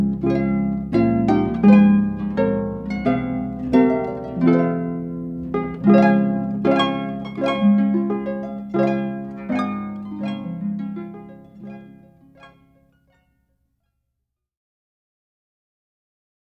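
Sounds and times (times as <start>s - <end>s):
solo harp: 0.0s - 12.8s.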